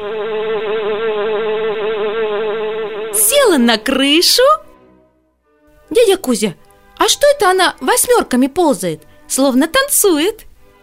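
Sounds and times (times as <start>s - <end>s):
honeybee buzzing flying out of a hive: 0.0s - 4.0s
speech: 3.2s - 4.6s, 5.9s - 10.5s.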